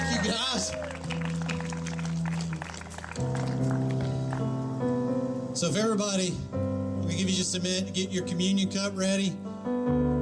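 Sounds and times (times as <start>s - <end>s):
audience clapping for worship team: 0.0s - 4.6s
speech: 5.6s - 10.1s.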